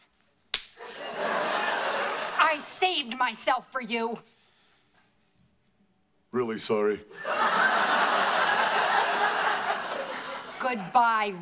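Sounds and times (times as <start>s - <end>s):
woman slapping a man across the face in a sitcom scene: 0.5s - 0.8s
laughter: 0.8s - 2.7s, 7.1s - 11.2s
speech: 2.8s - 4.4s, 6.3s - 7.7s, 10.7s - 11.3s.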